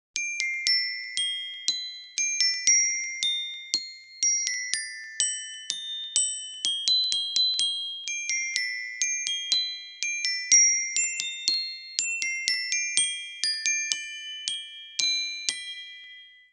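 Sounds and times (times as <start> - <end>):
glockenspiel: 0.2 - 16.5.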